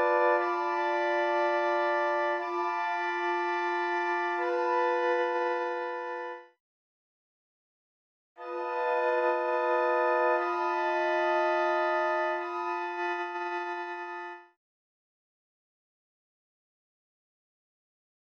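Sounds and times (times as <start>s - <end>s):
chord: 0.0s - 6.5s, 8.4s - 14.4s.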